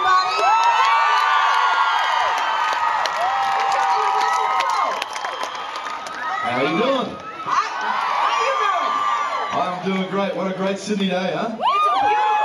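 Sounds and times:
women screaming: 0.0s - 5.1s, 7.2s - 9.6s, 11.6s - 12.4s
audience cheering: 0.0s - 10.6s, 11.6s - 12.4s
speech: 10.2s - 11.6s.

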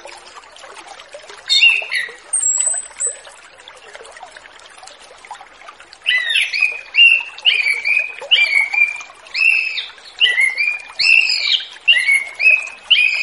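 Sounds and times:
orange-headed thrush song in relaxed open-flowing style: 1.5s - 3.2s, 6.1s - 13.2s.

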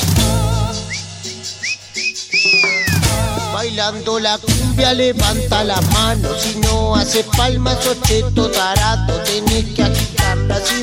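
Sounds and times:
whistling: 0.8s - 3.4s
speech: 3.7s - 10.8s.

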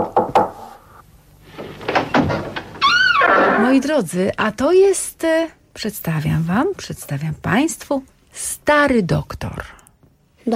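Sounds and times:
knocking on a door: 0.0s - 0.6s
rattling and shuffling noise: 1.4s - 2.8s
speech: 3.7s - 9.8s.

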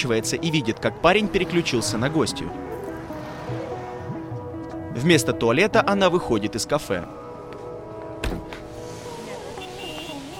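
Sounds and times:
speech: 0.0s - 2.7s, 5.0s - 7.2s
slow-moving car traffic on highways: 0.0s - 10.3s
sharp thump: 8.2s - 8.7s.

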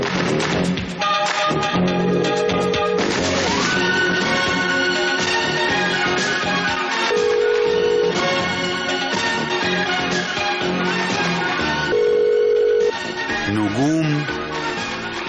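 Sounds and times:
busy music: 0.0s - 15.2s
telephone ringing: 2.1s - 3.0s, 7.1s - 8.3s, 11.9s - 13.0s.

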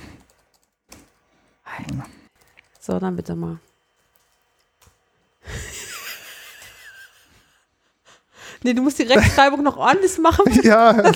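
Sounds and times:
typing a flirt text on a computer keyboard: 0.0s - 7.2s
speech: 1.8s - 2.2s, 2.9s - 3.7s, 8.6s - 11.1s
laughter: 5.4s - 7.6s, 9.2s - 11.1s.

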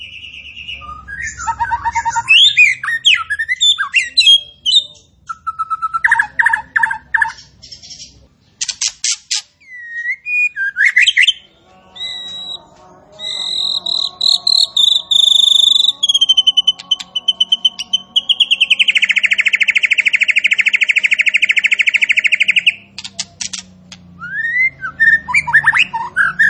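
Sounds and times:
striated grassbird song of sharp whistled notes and quick chirps: 0.0s - 7.9s, 9.6s - 12.6s, 13.2s - 22.9s, 24.2s - 26.4s.

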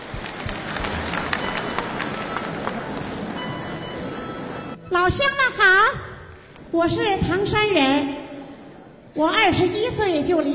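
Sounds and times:
audience applause: 0.0s - 4.5s
speech: 5.0s - 6.1s, 6.7s - 8.2s, 9.2s - 10.5s.

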